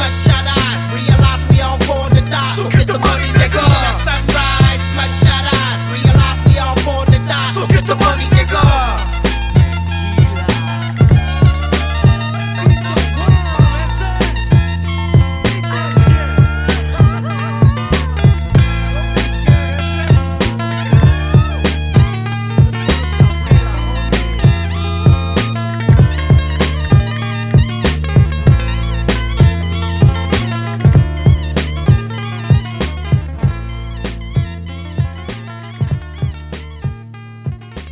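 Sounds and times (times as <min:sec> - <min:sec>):
laughter: 0:00.0 - 0:33.2
ambience: 0:00.0 - 0:37.6
music: 0:00.0 - 0:37.9.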